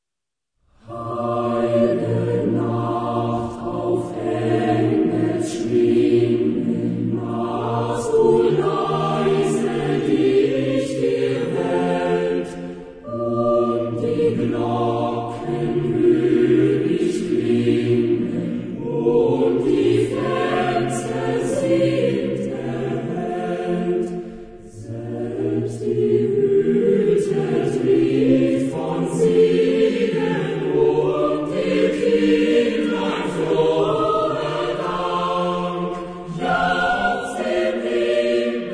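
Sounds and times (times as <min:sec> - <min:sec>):
choir singing: 0:00.7 - 0:38.7.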